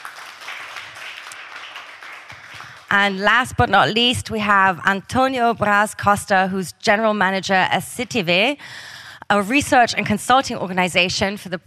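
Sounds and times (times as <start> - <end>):
crowd applause: 0.0 - 2.9
speech: 2.9 - 11.6.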